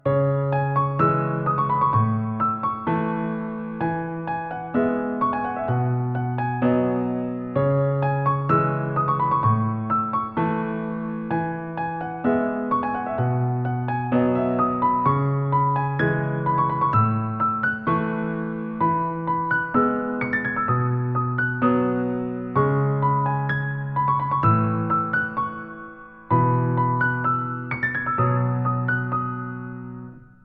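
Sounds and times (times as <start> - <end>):
piano cover: 0.0 - 30.4.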